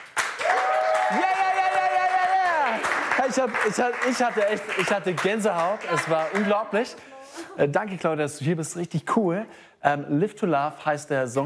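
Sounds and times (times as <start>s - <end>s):
studio crew applause: 0.2s - 6.6s
speech: 3.2s - 11.4s.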